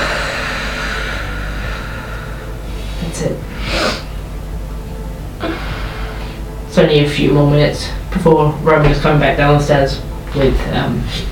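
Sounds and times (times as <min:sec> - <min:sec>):
deep breath in: 0:00.0 - 0:04.1
steady low hum: 0:00.0 - 0:11.3
speech: 0:03.2 - 0:03.6, 0:06.8 - 0:11.3.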